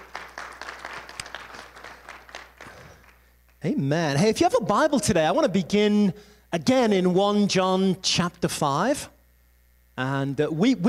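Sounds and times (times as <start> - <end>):
audience clapping hands in welcome: 0.0 - 3.6
speech: 3.6 - 9.2, 10.0 - 10.8.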